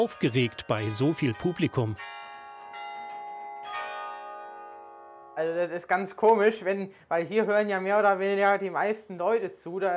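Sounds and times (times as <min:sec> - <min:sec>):
speech: 0:00.0 - 0:02.2, 0:05.4 - 0:09.9
carillon bells played from the tower: 0:00.0 - 0:05.4.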